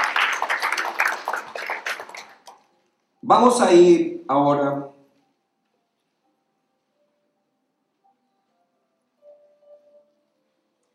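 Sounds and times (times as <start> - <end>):
crowd clapping: 0.0 - 2.7
speech: 3.2 - 5.0.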